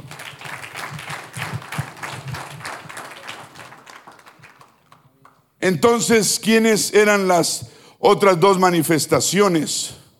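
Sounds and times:
crowd applauding: 0.0 - 5.5
speech: 5.6 - 10.0.

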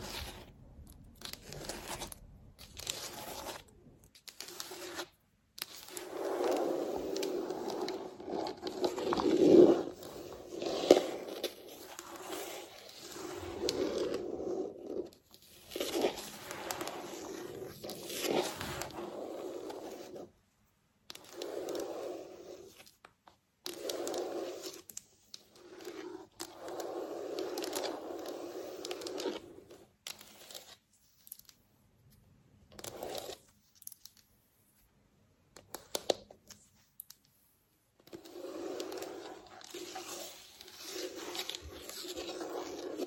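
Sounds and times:
fake nails scratching across a floor: 1.2 - 20.4, 21.1 - 23.0, 23.6 - 30.8, 32.8 - 33.6, 38.0 - 43.0.

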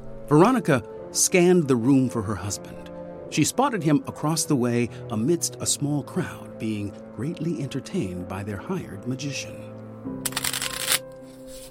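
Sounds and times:
speech: 0.3 - 9.8
playing cards being shuffled: 10.3 - 11.6.

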